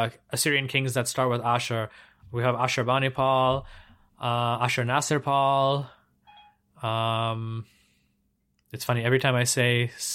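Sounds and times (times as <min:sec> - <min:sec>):
speech: 0:00.0 - 0:06.0, 0:06.8 - 0:07.8, 0:08.7 - 0:10.1
voice assistant activation beep: 0:06.2 - 0:06.6.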